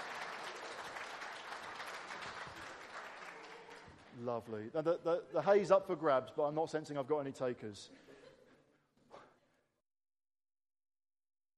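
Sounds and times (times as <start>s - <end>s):
audience applause: 0.0s - 4.3s
speech: 4.2s - 8.1s.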